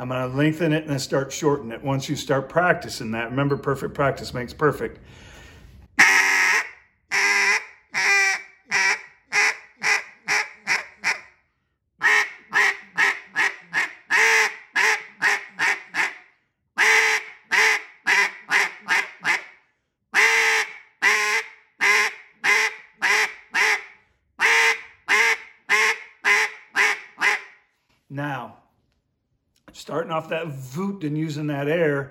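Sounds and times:
speech: 0.0s - 5.3s, 30.2s - 32.1s
hand-blown mallard duck call quacking: 6.0s - 11.3s, 12.0s - 16.2s, 16.8s - 19.6s, 20.2s - 27.6s.

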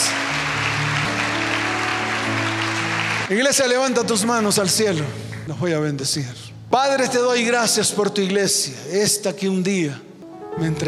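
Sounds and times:
audience applause: 0.0s - 3.6s
sustained low keyboard chords: 0.0s - 9.2s, 9.8s - 10.8s
speech: 3.3s - 10.8s.

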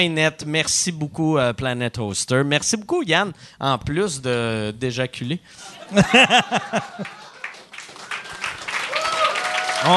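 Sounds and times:
speech: 0.0s - 7.2s, 9.8s - 9.9s
audience laughing: 5.6s - 7.6s
audience clapping: 6.4s - 9.9s
whoops: 8.2s - 9.9s.

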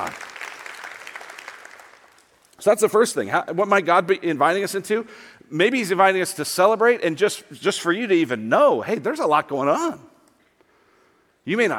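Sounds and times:
audience applause: 0.0s - 2.3s
speech: 2.6s - 10.1s, 11.4s - 11.7s.

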